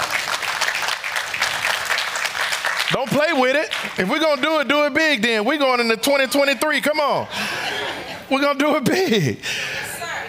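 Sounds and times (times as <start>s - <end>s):
audience clapping: 0.0s - 5.2s
speech: 3.0s - 9.6s
laughter: 7.3s - 9.4s.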